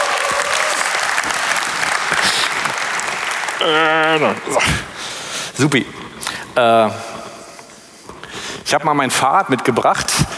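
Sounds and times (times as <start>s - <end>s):
audience applause: 0.0s - 5.1s
speech: 3.6s - 4.9s, 5.6s - 6.0s, 6.6s - 7.1s, 8.7s - 10.3s.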